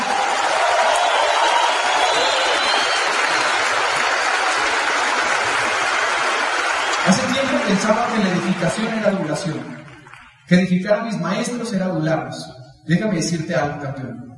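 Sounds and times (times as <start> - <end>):
sustained applause from a large audience: 0.0 - 10.5
speech: 7.8 - 9.9, 10.5 - 14.3.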